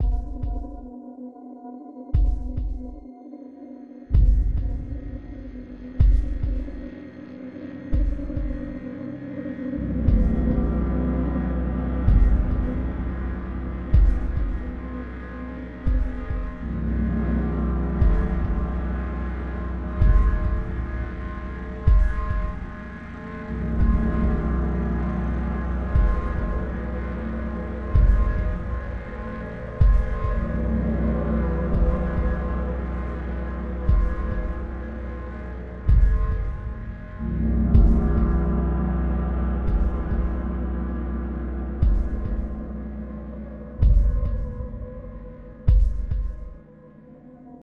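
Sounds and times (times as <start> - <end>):
scary ambient music loop with a pulse: 0.0 - 47.6.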